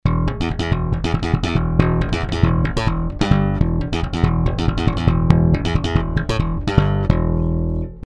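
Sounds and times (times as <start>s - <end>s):
bass: 0.0s - 8.0s.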